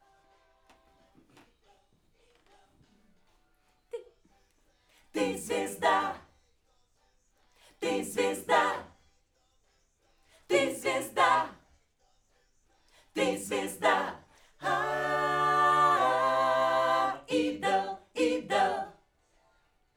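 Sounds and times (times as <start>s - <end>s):
backing vocals on AKG microphone: 5.2s - 6.2s, 7.8s - 8.9s, 10.5s - 11.6s, 13.2s - 18.9s.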